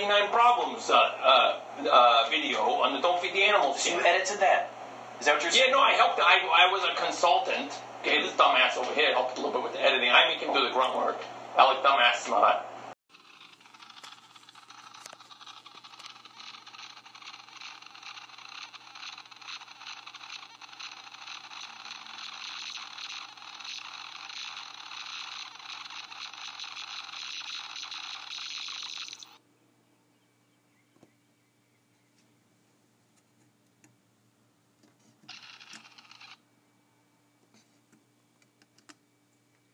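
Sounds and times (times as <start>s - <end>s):
speech: 0.0s - 12.7s
battery-powered plastic elephant magnet toy: 13.1s - 29.4s, 35.3s - 36.4s.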